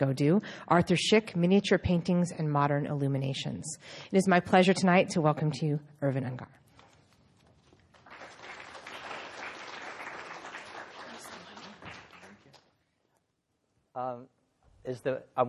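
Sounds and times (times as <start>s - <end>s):
speech: 0.0s - 6.6s, 14.0s - 15.4s
audience applause after introduction: 7.9s - 12.6s.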